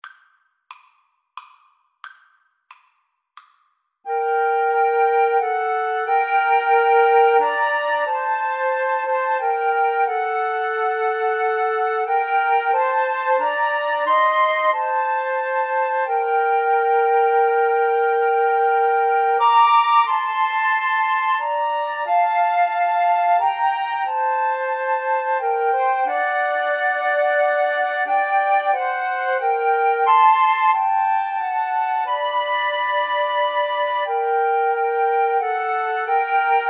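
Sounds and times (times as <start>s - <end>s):
flute trio: 4.1s - 36.6s.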